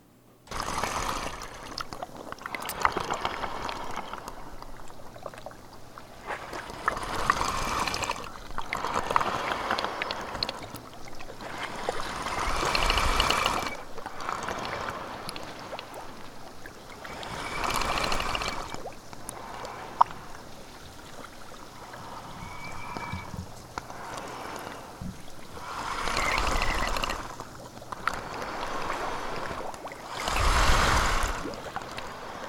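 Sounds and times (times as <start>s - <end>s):
waves forcing air up through small holes in ice: 0.5s - 1.9s, 6.2s - 16.2s, 17.0s - 20.5s, 21.6s - 32.4s
steady watery wash: 0.5s - 32.4s.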